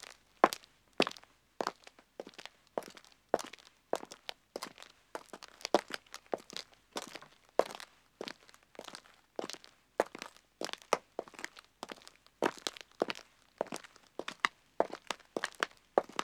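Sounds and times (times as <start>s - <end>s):
two men walking on a country road: 0.0s - 16.2s.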